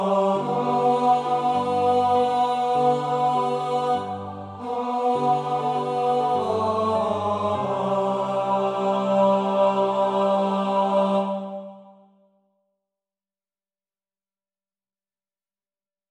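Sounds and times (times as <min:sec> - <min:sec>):
tenor singing: 0:00.0 - 0:11.9.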